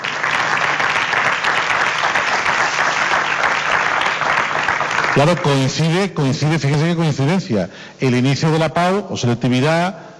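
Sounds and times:
audience applause: 0:00.0 - 0:05.7
speech: 0:05.2 - 0:10.1.

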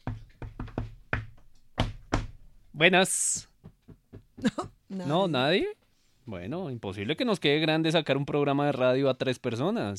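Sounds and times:
knuckles knocking on a door: 0:00.0 - 0:02.4, 0:03.4 - 0:04.8
speech: 0:02.8 - 0:03.5, 0:04.4 - 0:09.9.

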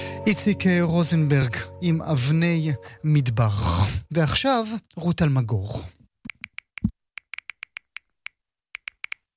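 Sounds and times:
speech: 0:00.3 - 0:05.9
quick clicking taps: 0:06.3 - 0:09.2.

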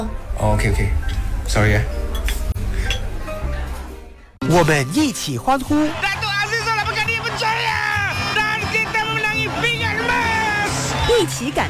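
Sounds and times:
speech: 0:00.0 - 0:02.1, 0:04.5 - 0:06.2, 0:11.2 - 0:11.6
restaurant dishes and cutlery clinking: 0:01.9 - 0:04.0
laughter: 0:05.7 - 0:11.6.

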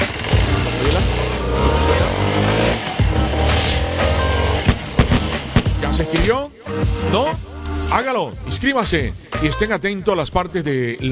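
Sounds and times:
sharp knocks: 0:00.0 - 0:07.1
Suzuki DR160X motorcycle engine starting and revving: 0:00.0 - 0:09.8
speech: 0:08.0 - 0:11.1.

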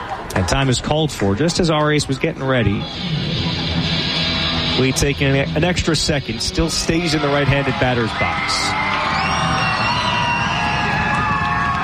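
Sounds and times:
stadium crowd roar: 0:00.0 - 0:11.8
speech: 0:00.4 - 0:03.9, 0:04.8 - 0:08.9
stadium crowd yells and whoops: 0:06.6 - 0:11.8.

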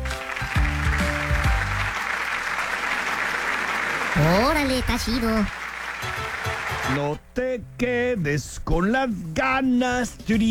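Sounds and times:
audience applause: 0:00.0 - 0:07.1
speech: 0:04.2 - 0:10.5.

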